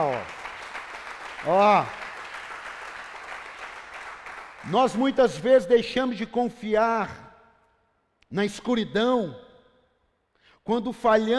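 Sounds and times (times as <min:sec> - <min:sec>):
speech: 0:00.0 - 0:00.4, 0:01.4 - 0:02.0, 0:04.6 - 0:07.2, 0:08.3 - 0:09.4, 0:10.6 - 0:11.3
audience applause: 0:00.0 - 0:04.6.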